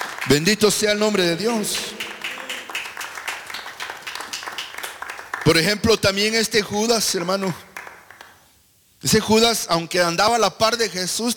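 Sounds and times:
audience clapping hands: 0.0s - 6.1s, 7.1s - 8.5s
speech: 0.3s - 2.0s, 5.5s - 7.7s, 9.0s - 11.3s.

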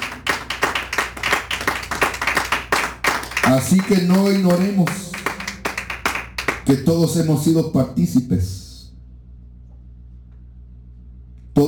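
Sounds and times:
audience clapping hands: 0.0s - 7.3s
speech: 3.5s - 5.0s, 6.7s - 8.6s.

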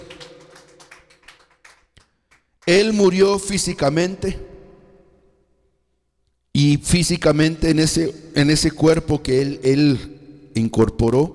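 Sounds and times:
church congregation clapping during a service: 0.0s - 3.3s
speech: 2.7s - 4.5s, 6.8s - 11.3s.

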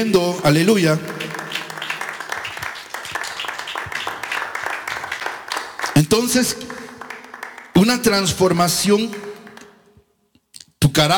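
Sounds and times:
speech: 0.0s - 1.2s, 6.1s - 6.8s, 7.9s - 9.3s, 11.0s - 11.1s
audience clapping: 0.0s - 9.8s.

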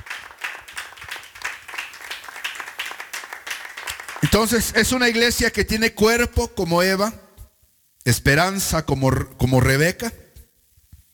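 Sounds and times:
audience clapping hands: 0.0s - 5.2s
speech: 4.2s - 7.2s, 8.0s - 10.2s.

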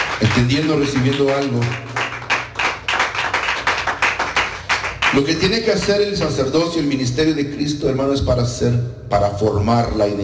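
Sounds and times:
church congregation clapping hands: 0.0s - 6.6s
speech: 0.2s - 1.9s, 5.1s - 10.2s.

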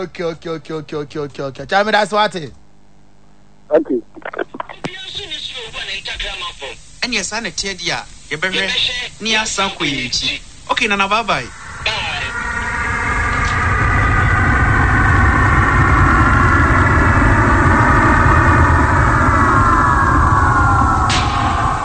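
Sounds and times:
speech: 0.0s - 2.6s, 3.7s - 12.2s
airplane engine roar while landing: 11.5s - 21.8s.

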